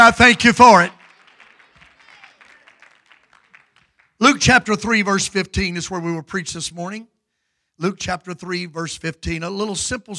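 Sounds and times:
audience clapping hands: 0.0 - 4.8
speech: 0.1 - 1.0, 4.2 - 7.1, 7.8 - 10.1.

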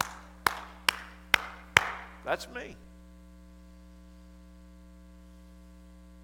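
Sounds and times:
hard hand clapping: 0.0 - 2.2
speech: 2.3 - 2.9.

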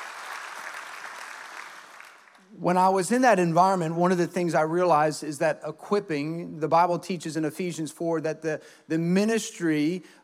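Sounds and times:
crowd applauding: 0.0 - 2.4
speech: 2.6 - 10.2.

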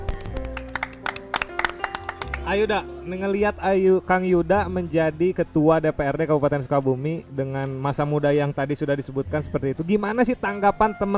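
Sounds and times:
audience applause: 0.1 - 2.6
speech: 2.5 - 11.1.

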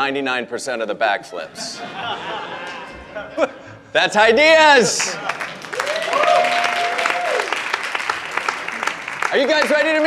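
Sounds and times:
speech: 0.0 - 5.4, 9.3 - 10.0
laughter: 1.5 - 4.0, 4.8 - 5.7
audience applause: 5.0 - 10.0
person whooping: 5.8 - 7.6.

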